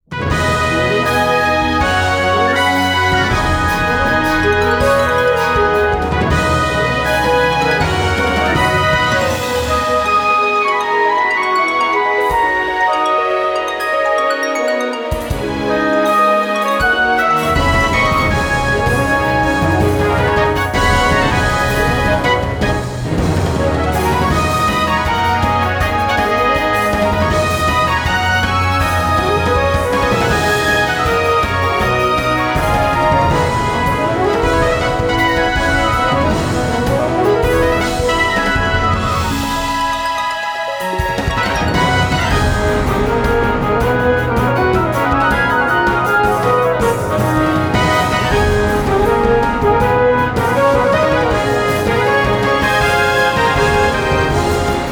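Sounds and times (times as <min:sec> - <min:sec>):
battle music: 0:00.0 - 0:54.8.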